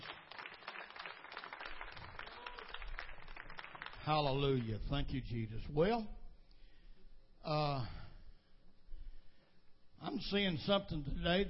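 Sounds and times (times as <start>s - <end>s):
audience clapping hands in praise: 0.0s - 4.9s
speech: 4.1s - 6.2s, 7.4s - 8.0s, 10.0s - 11.4s.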